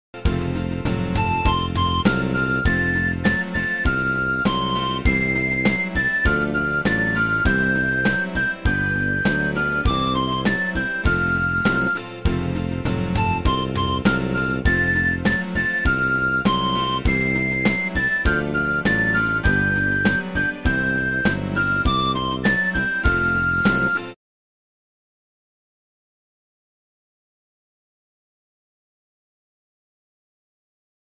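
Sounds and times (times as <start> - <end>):
Vietnamese instrumental music beat: 1.1 - 24.2.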